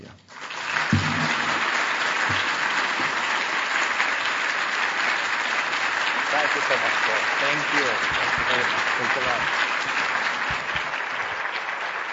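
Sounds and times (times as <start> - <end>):
audience applause welcoming speakers: 0.0 - 12.1
heavier low thumps: 0.9 - 1.7
speech: 6.6 - 10.0.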